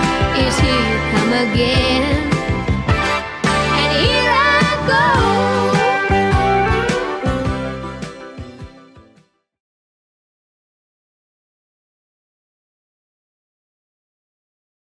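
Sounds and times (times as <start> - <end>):
70s-style music: 0.0 - 9.5.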